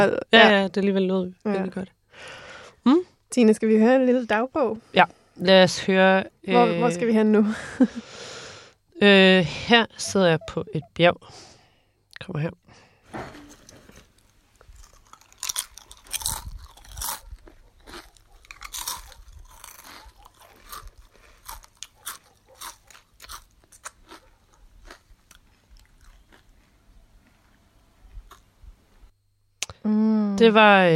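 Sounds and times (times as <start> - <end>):
speech: 0.0 - 8.3, 9.0 - 11.5, 12.2 - 12.6, 29.8 - 30.9
crisp crunching of chips being chewed: 13.6 - 27.4.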